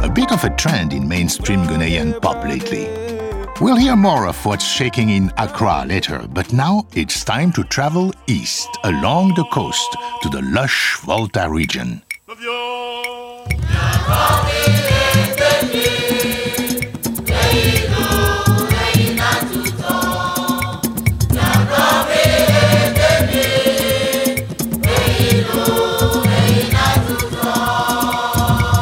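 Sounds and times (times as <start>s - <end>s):
speech: 0.2s - 12.6s
dense percussion in Bobobo neo-traditional Ewe popular music: 13.5s - 28.8s
layered melodic parts in Bobobo neo-traditional Ewe popular music: 13.7s - 28.8s.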